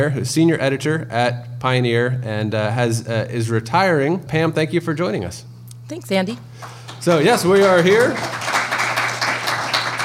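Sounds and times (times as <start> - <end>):
speech: 0.0 - 8.5
crowd applause: 6.6 - 10.0.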